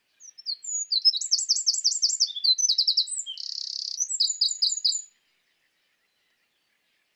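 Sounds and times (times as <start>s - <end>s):
Eurasian wren Troglodytes troglodytes indigenus singing: 0.2s - 5.1s.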